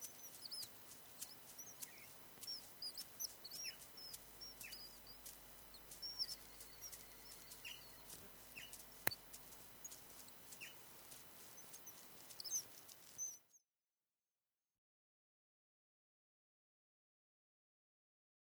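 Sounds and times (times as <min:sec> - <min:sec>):
nature ambience: 0:00.0 - 0:13.6.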